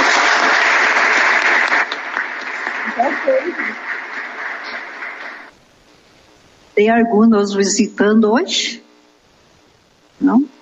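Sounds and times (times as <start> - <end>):
church congregation applause near the end of a Mass: 0.0 - 5.5
speech: 6.8 - 8.8, 10.2 - 10.5.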